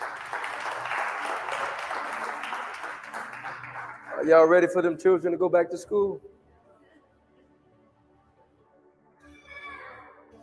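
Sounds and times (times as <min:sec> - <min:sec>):
crowd clapping: 0:00.0 - 0:05.0
speech: 0:04.2 - 0:06.3.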